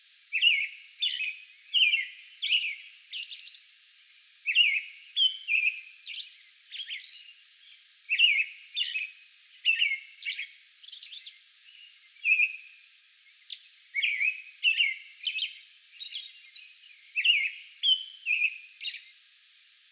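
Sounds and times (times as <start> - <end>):
American robin singing: 0.3 - 3.7, 4.5 - 12.7, 13.3 - 19.2.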